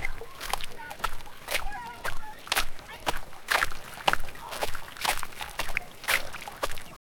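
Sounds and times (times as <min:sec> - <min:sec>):
man casually walking in water: 0:00.0 - 0:07.0.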